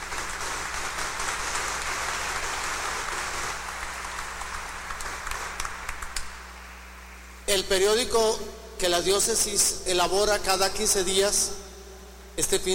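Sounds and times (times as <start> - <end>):
crowd applause for birthday celebrants: 0.0 - 6.4
speech: 7.5 - 11.6, 12.4 - 12.7.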